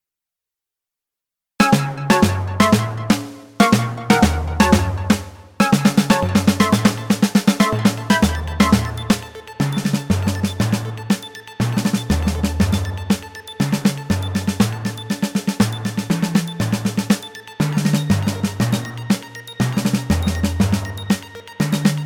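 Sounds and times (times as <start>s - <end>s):
synth snare drum etude: 1.6s - 22.0s.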